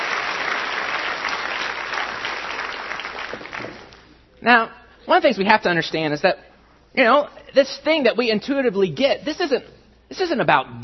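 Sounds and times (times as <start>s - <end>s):
audience applause: 0.0s - 4.0s
speech: 4.4s - 10.8s.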